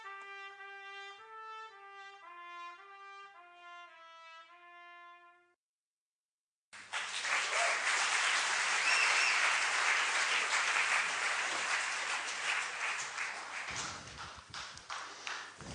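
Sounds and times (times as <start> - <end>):
audience applause: 6.7 - 15.6.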